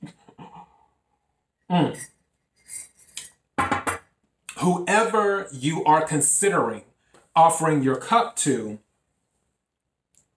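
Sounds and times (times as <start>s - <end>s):
speech: 1.7s - 2.1s, 4.6s - 8.8s
spoon stirring water in a glass: 1.9s - 3.4s.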